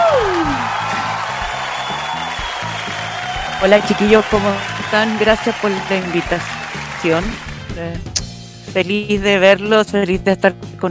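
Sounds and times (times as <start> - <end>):
steady dense clapping from a group: 0.0 - 7.8
speech: 3.6 - 10.8.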